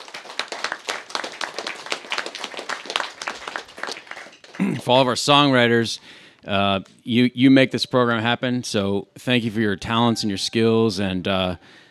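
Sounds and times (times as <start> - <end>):
round of applause: 0.0 - 5.4
speech: 4.6 - 11.8.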